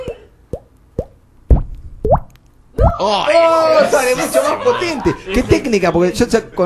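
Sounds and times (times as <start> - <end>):
water drop sound effect plops: 0.1 - 3.0
speech: 2.8 - 6.6
laughter: 3.7 - 6.6.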